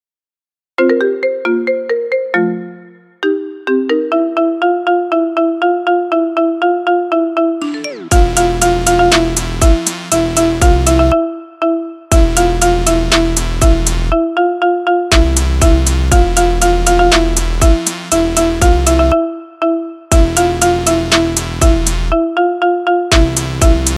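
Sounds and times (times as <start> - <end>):
marimba ringtone: 0.8 - 23.9.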